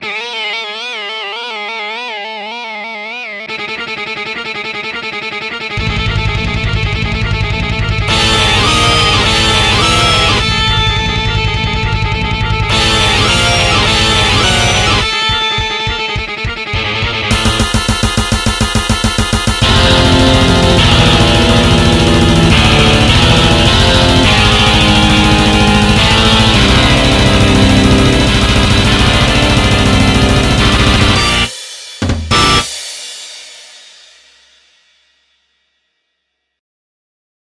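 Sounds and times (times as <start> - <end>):
death metal music: 5.8 - 32.8.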